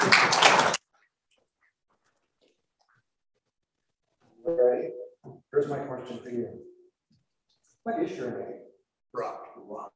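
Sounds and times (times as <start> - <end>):
applause: 0.0 - 0.9
speech: 5.7 - 6.7, 7.8 - 9.9.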